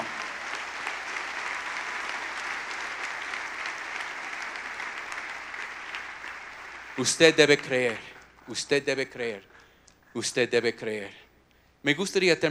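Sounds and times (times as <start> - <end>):
audience applause: 0.0 - 8.3
speech: 7.0 - 9.5, 10.1 - 11.2, 11.8 - 12.4.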